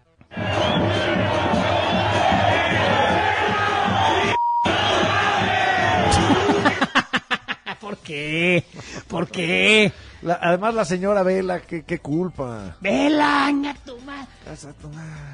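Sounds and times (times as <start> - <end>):
stadium crowd chanting insults during a football match: 0.3 - 6.8
short beep: 4.4 - 4.7
laughter: 5.8 - 9.9
speech: 8.1 - 15.3.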